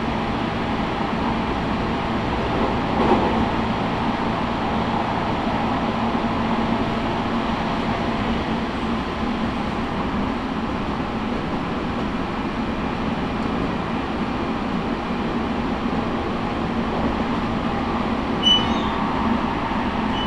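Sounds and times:
Tokaido Line train between Hamamatsu and Toyohashi rumbling: 0.0s - 20.2s
faint high squeaks: 18.4s - 19.1s, 20.1s - 20.2s.

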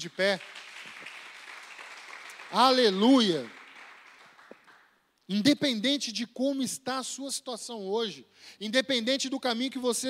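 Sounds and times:
speech: 0.0s - 0.6s, 2.5s - 3.6s, 5.3s - 10.0s
audience applause: 0.0s - 4.9s.

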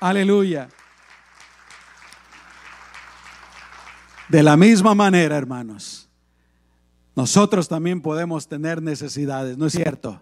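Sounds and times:
speech: 0.0s - 0.8s, 4.3s - 6.1s, 7.2s - 10.2s
audience clapping: 0.0s - 5.0s.

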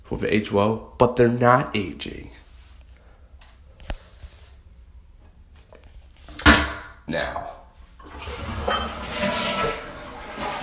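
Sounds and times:
speech: 0.2s - 2.4s, 7.1s - 7.6s
toilet flushing: 8.0s - 10.6s.

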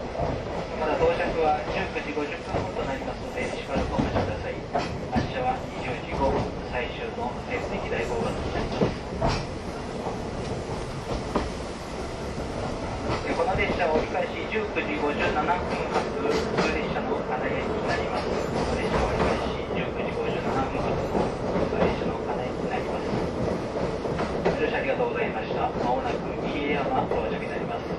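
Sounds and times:
old-style passenger coach ride noise on a local train: 0.0s - 27.9s.

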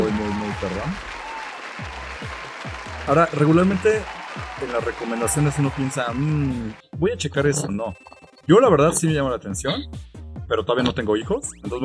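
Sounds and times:
background applause sound effect: 0.0s - 6.8s
speech: 0.6s - 1.2s, 3.1s - 11.8s.

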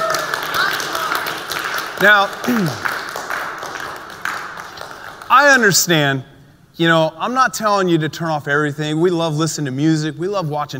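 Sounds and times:
audience clapping: 0.0s - 5.9s
speech: 2.0s - 2.9s, 5.3s - 10.7s.

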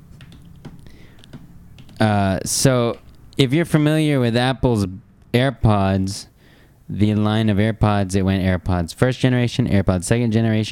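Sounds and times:
typing on a computer keyboard: 0.2s - 2.0s
speech: 2.0s - 6.3s, 6.9s - 10.7s.

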